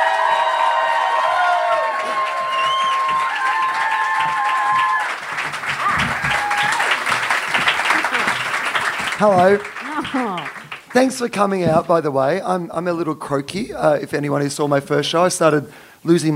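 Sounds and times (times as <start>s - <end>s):
comedy show audience clapping: 0.0s - 12.0s
audience whoops and high whistles: 2.3s - 3.6s
speech: 9.2s - 16.3s.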